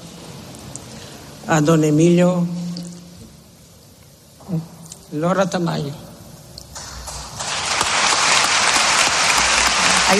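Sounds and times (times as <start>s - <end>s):
speech: 1.5s - 2.6s, 4.5s - 6.0s
audience applause: 6.8s - 10.1s.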